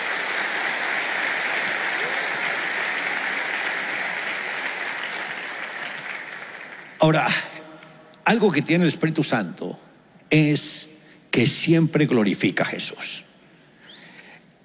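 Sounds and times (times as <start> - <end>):
audience applause: 0.0 - 7.2
speech: 7.0 - 7.5, 8.3 - 13.3.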